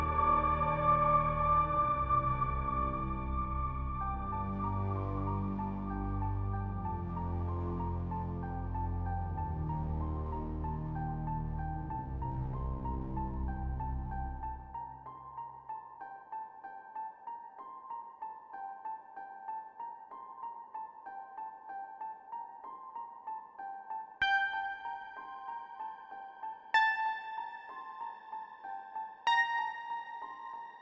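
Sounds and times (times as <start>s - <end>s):
ambient music: 0.0s - 30.8s.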